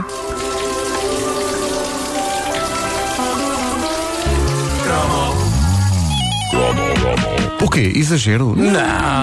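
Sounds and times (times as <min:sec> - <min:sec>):
water pattering and splashing: 0:00.0 - 0:06.7
speech: 0:07.8 - 0:09.2.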